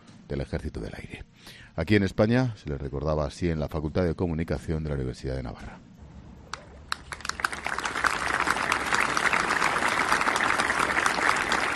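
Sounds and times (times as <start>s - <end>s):
speech: 0.3s - 5.9s
students applauding: 6.9s - 11.7s.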